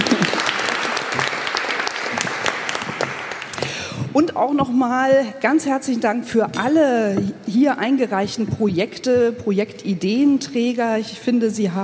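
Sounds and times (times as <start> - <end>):
audience applause: 0.0 - 3.8
speech: 4.2 - 11.8.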